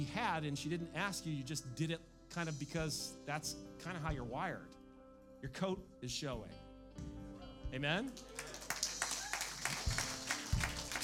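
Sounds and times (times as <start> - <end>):
speech: 0.0 - 4.8, 5.4 - 8.6
scattered clapping from a few people: 8.2 - 11.0.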